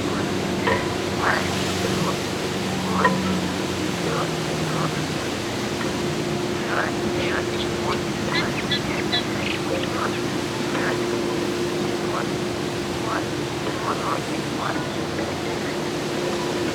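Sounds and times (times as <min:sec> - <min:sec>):
frogs croaking at a dike in Gdańsk, Poland: 0:00.0 - 0:16.7.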